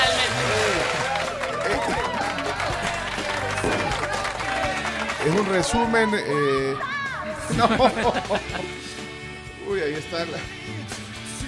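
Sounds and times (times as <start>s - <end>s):
crowd standing ovation applause: 0.0s - 7.3s
laughter: 1.2s - 5.5s, 7.3s - 8.9s
speech: 5.2s - 6.9s, 7.5s - 8.9s, 9.7s - 11.0s.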